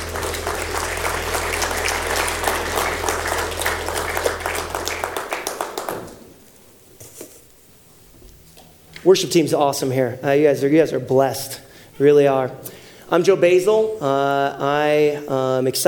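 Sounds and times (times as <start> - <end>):
congregation applauding a pastor at a Sunday morning service: 0.0 - 6.4
speech: 9.0 - 15.8.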